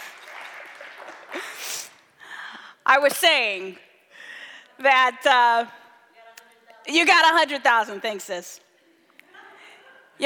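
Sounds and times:
crowd clapping: 0.0s - 1.7s
speech: 2.9s - 3.9s, 4.8s - 5.8s, 6.9s - 8.6s.

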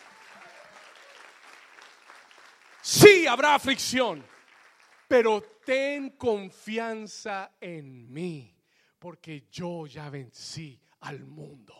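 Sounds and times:
audience applause: 0.0s - 5.6s
speech: 2.9s - 4.3s, 5.1s - 11.7s.

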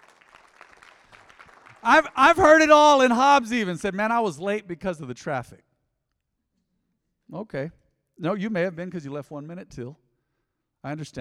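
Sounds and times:
audience clapping: 0.0s - 3.6s
speech: 1.8s - 5.7s, 7.3s - 10.0s, 10.8s - 11.1s.

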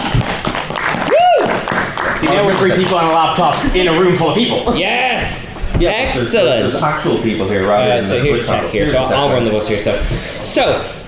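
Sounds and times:
audience applause: 0.0s - 4.3s
speech: 2.2s - 11.0s.

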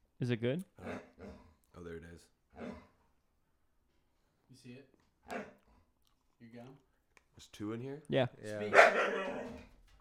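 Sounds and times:
speech: 0.2s - 1.0s, 1.8s - 2.8s, 4.5s - 5.6s, 6.4s - 9.7s
dog barking: 5.3s - 5.6s, 8.6s - 9.7s.

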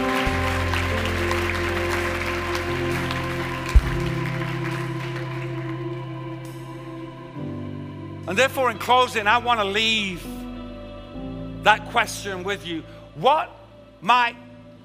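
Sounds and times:
audience clapping: 0.0s - 7.0s
speech: 8.3s - 10.4s, 11.6s - 14.4s.

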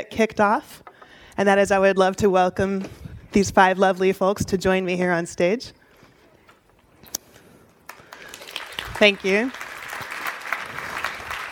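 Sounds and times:
speech: 0.0s - 5.8s, 9.0s - 9.6s
audience applause: 7.8s - 11.5s.

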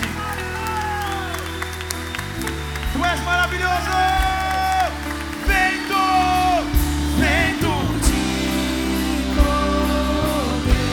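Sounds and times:
church congregation clapping in praise: 0.0s - 10.9s
sustained musical tones: 0.0s - 10.9s.

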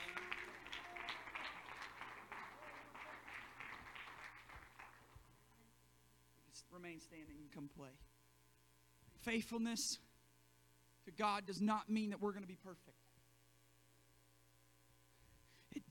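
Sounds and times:
audience clapping hands: 0.0s - 5.4s
low electrical hum: 0.0s - 15.8s
speech: 6.8s - 8.1s, 9.2s - 10.1s, 11.1s - 13.0s.

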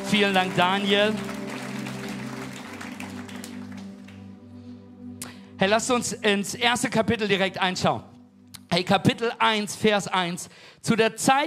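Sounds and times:
audience clapping: 0.0s - 4.4s
low musical drone: 0.0s - 9.9s
speech: 0.1s - 1.3s, 5.6s - 8.1s, 8.7s - 11.4s.

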